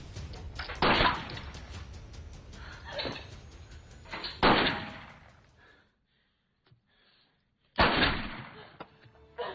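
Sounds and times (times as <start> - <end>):
low rumbling background: 0.0 - 5.8
sharp booming gunshot: 0.7 - 1.5, 4.4 - 5.3, 7.8 - 8.6.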